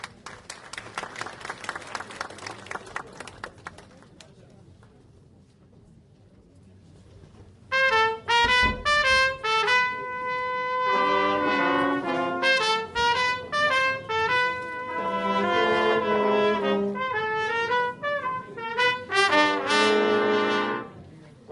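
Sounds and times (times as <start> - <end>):
audience applauding at a medal ceremony: 0.0 - 4.0
brass band playing loud sustained chords: 7.7 - 21.4.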